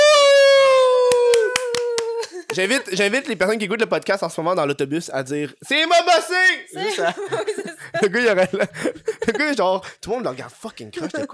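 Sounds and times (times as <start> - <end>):
laughter: 0.9 - 3.0, 6.7 - 11.3
hand claps welcoming a guest: 1.0 - 2.8
speech: 2.6 - 11.3.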